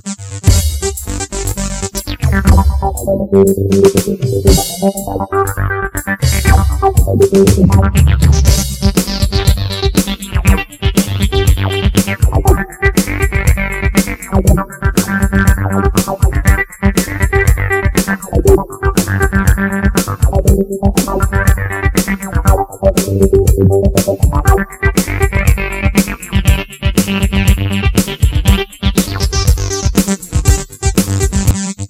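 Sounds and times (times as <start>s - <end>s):
hard rock loop: 0.5s - 31.5s.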